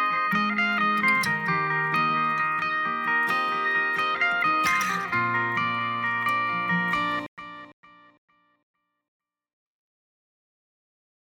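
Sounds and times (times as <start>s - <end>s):
instrumental music: 0.0s - 8.2s.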